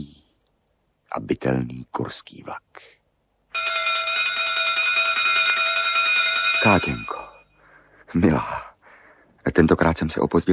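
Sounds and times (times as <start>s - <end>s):
speech: 1.2s - 3.0s, 6.6s - 7.2s, 8.1s - 8.7s, 9.4s - 10.5s
loud electric bell ringing: 3.5s - 7.6s.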